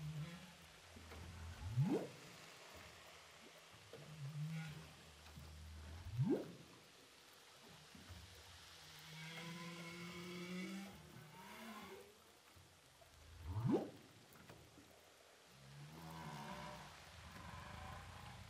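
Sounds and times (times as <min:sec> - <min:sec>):
humpback whale song recorded underwater with a hydrophone off Saint-Paul, Réunion: 0:00.0 - 0:07.0, 0:08.8 - 0:12.3, 0:15.6 - 0:18.4.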